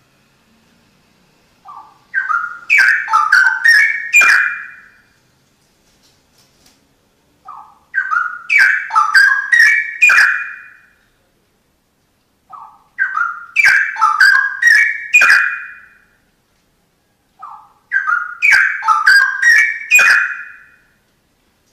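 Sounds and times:
Oriental magpie-robin song: 1.6 - 5.1, 7.4 - 11.0, 12.5 - 16.2, 17.3 - 21.0.

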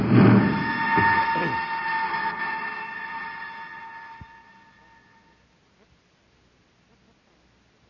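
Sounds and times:
humming tones: 0.0 - 5.4
rocket ship landing roar: 0.0 - 5.4.

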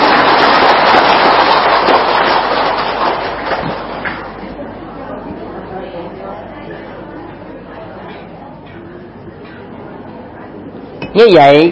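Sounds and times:
audience applause: 0.0 - 4.4
speech: 11.2 - 11.7.

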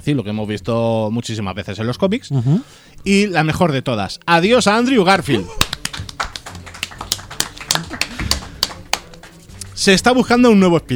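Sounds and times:
speech: 0.0 - 6.1, 9.8 - 10.9
scattered applause from a small group: 5.5 - 9.5.

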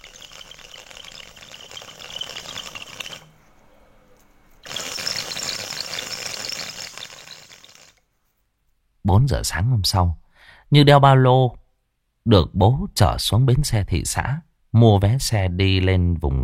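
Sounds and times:
bamboo water pipe bubbling while smoked: 0.0 - 3.3, 4.6 - 7.9
speech: 9.1 - 11.6, 12.2 - 16.4.

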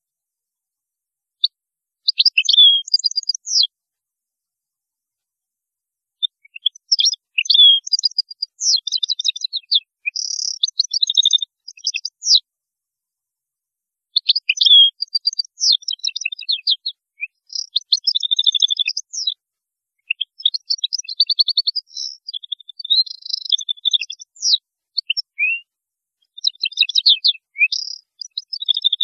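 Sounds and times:
European goldfinch twittering song: 2.1 - 3.7, 6.2 - 12.4, 14.2 - 19.4, 20.1 - 25.6, 26.3 - 29.0.

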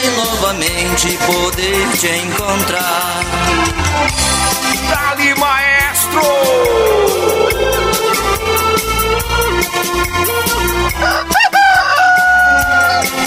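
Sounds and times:
loud music track with a pulsing bass beat: 0.0 - 11.4
speech: 0.5 - 7.3
rooster crowing: 6.6 - 9.0, 11.0 - 13.1.

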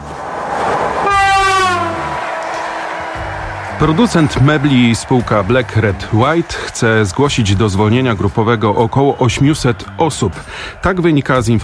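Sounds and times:
passenger train rumbling along the rails: 0.0 - 6.8
loud multi-tone train horn blaring: 0.2 - 5.4
speech: 3.8 - 11.6.

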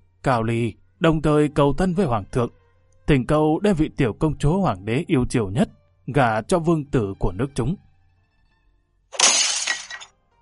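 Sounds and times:
speech: 0.2 - 7.8
teapot thrown and smashed to pieces: 9.2 - 10.1.

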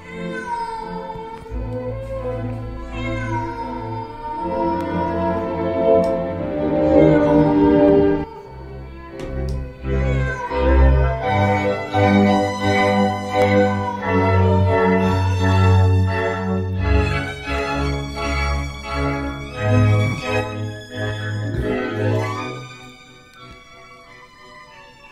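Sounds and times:
cat yowling: 0.0 - 8.7, 9.6 - 16.7, 19.5 - 25.1
low droning background: 1.5 - 9.0, 10.9 - 23.0.

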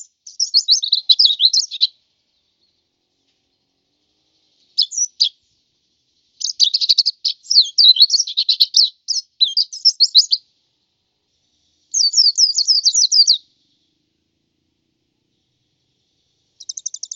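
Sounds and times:
white-eye twittering song: 0.0 - 1.9, 4.7 - 5.4, 6.4 - 10.4, 11.9 - 13.7, 16.6 - 17.1.

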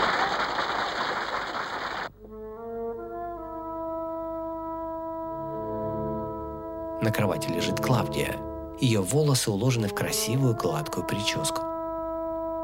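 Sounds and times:
group of people applauding in a dramatized scene: 0.0 - 2.1
sustained musical notes: 2.2 - 12.6
speech: 7.0 - 11.7.

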